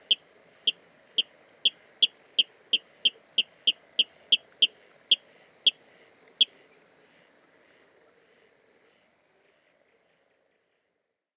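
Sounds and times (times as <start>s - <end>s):
water rail sharp kip calls: 0.0s - 5.8s.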